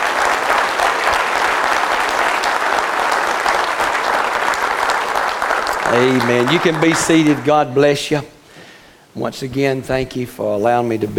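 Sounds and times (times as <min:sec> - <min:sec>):
congregation clapping hands in praise during a church service: 0:00.0 - 0:08.0
speech: 0:05.9 - 0:08.4, 0:09.2 - 0:11.1.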